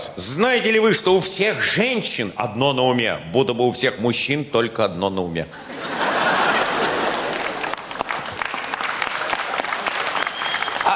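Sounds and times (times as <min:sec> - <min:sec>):
speech: 0:00.2 - 0:05.7
laughter: 0:05.5 - 0:08.0
audience applause: 0:06.1 - 0:10.9
audience whistling: 0:10.2 - 0:10.9.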